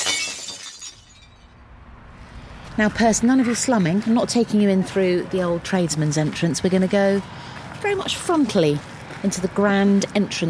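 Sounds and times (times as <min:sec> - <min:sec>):
plate shards clattering and tinkling: 0:00.0 - 0:01.5
plate smashing: 0:00.0 - 0:01.5
speech: 0:02.8 - 0:10.4.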